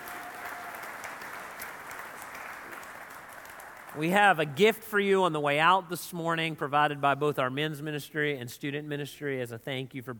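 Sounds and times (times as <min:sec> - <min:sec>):
audience round of applause: 0:00.0 - 0:04.5
speech: 0:04.0 - 0:10.1.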